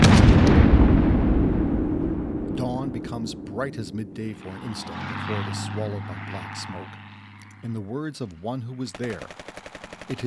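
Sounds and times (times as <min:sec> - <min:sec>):
bombs and artillery shells exploding: 0:00.0 - 0:04.2
speech: 0:03.2 - 0:07.0, 0:07.6 - 0:10.2.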